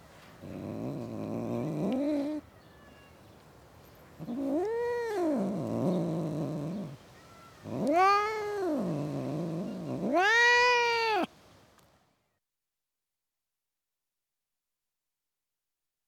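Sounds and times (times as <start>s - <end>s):
cat yowling: 0.5s - 2.4s, 4.2s - 11.3s.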